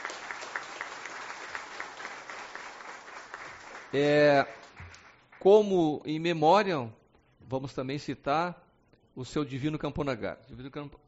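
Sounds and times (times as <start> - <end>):
round of applause: 0.0 - 5.5
speech: 3.9 - 4.6, 5.4 - 8.6, 9.2 - 11.0.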